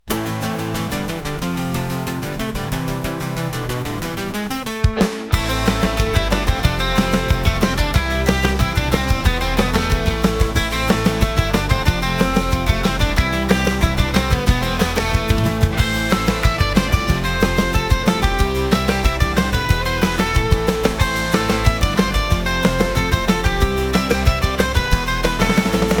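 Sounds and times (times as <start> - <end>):
instrumental music: 0.0 - 25.9.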